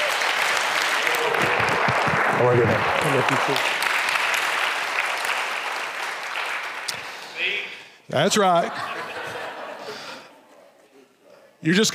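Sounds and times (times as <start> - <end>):
audience applause: 0.0 - 7.6
laughter: 1.2 - 3.7, 8.3 - 11.3
speech: 2.4 - 3.8, 8.1 - 9.0, 11.6 - 11.9.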